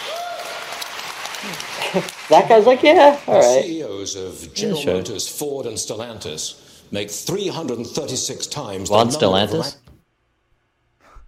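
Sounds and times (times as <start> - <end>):
applause in played clip: 0.0 - 3.6
speech: 1.4 - 9.8.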